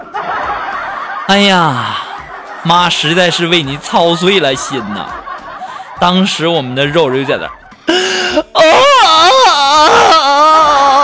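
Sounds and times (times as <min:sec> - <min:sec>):
laughter: 0:00.0 - 0:11.0
speech: 0:01.3 - 0:02.0, 0:02.6 - 0:05.2, 0:06.0 - 0:09.2
baby crying: 0:07.9 - 0:11.0.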